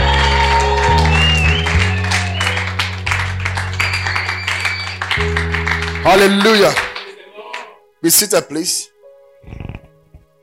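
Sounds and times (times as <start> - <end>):
low keyboard or organ chords: 0.0 - 7.0
audience clapping in rhythm: 0.0 - 7.8
speech: 6.1 - 6.8, 8.0 - 9.6.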